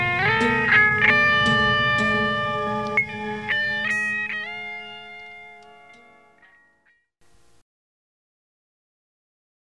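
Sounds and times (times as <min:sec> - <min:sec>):
church blues music: 0:00.0 - 0:06.8.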